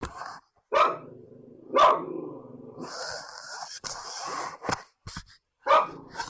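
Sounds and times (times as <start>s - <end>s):
animal barking: 0.7s - 3.4s, 5.6s - 6.2s.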